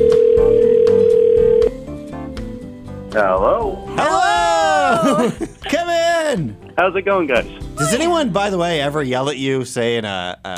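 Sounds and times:
phone tone as a call is placed: 0.0s - 1.7s
speech: 3.2s - 4.1s, 5.0s - 10.5s
laughter: 4.4s - 5.8s.

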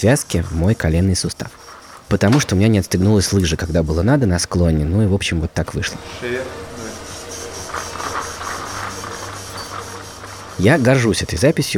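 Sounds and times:
speech: 0.0s - 6.7s, 10.6s - 11.7s
surgical drill boring a channel through bone: 6.0s - 11.7s.

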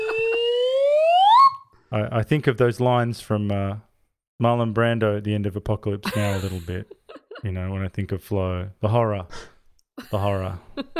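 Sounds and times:
half slide whistle: 0.0s - 1.7s
speech: 1.9s - 10.9s
laughter: 6.0s - 7.4s.

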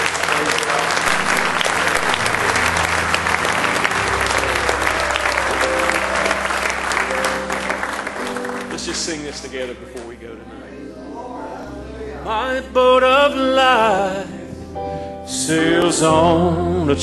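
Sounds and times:
worship congregation hand clapping: 0.0s - 10.3s
crowd murmur: 0.0s - 12.8s
sustained organ or keyboard tones: 0.0s - 17.0s
speech: 9.2s - 10.8s, 12.3s - 14.3s, 15.5s - 17.0s.

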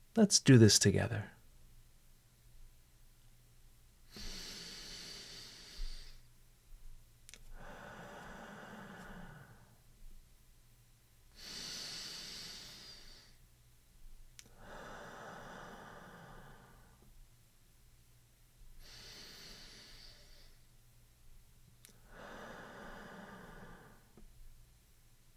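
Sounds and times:
speech: 0.2s - 1.4s
slow deliberate breathing in a guided exercise: 4.1s - 6.3s, 7.5s - 9.8s, 11.3s - 13.4s, 14.5s - 17.1s, 18.8s - 20.7s, 21.9s - 24.3s.

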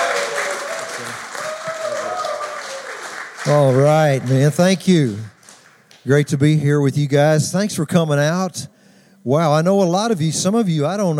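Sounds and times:
audience applause: 0.0s - 5.9s
speech: 3.4s - 5.3s, 6.0s - 11.1s.

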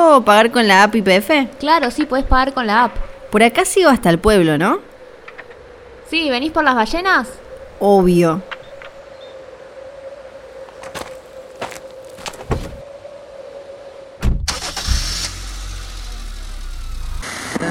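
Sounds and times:
speech: 0.2s - 4.9s, 6.1s - 8.5s
car engine starting: 14.4s - 17.6s.

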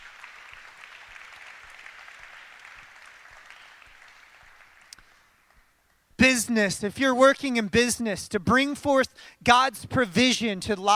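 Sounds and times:
audience applause: 0.0s - 5.6s
speech: 6.3s - 10.9s.

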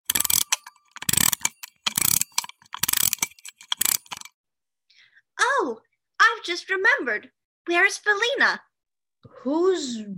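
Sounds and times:
clockwork mechanism being wound up: 0.0s - 4.4s
speech: 6.5s - 8.7s, 9.4s - 10.1s.

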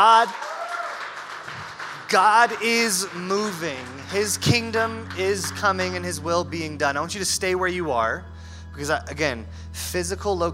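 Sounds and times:
speech: 0.0s - 0.6s, 2.1s - 10.5s
audience applause: 0.0s - 6.3s
sung or spoken tone: 2.1s - 10.5s.

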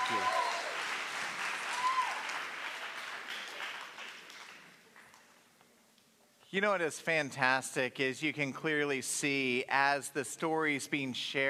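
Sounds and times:
audience applause: 0.0s - 4.8s
speech: 6.5s - 11.4s.

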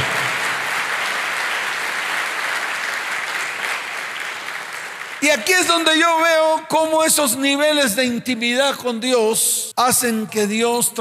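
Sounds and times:
audience applause: 0.0s - 5.2s
speech: 5.2s - 10.9s.

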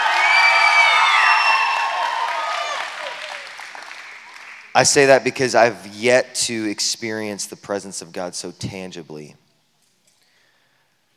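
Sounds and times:
crowd cheering and whooping: 0.0s - 4.6s
crowd clapping: 0.0s - 5.2s
speech: 4.8s - 9.4s.

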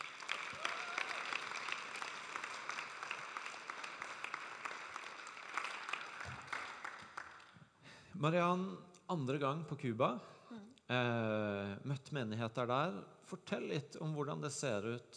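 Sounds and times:
audience applause: 0.0s - 7.5s
speech: 8.2s - 15.1s.

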